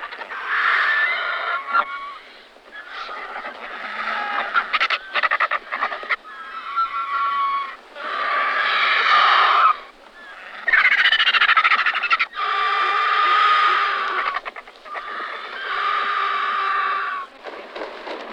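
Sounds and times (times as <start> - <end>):
griffon vulture squealing: 0.1 - 17.3.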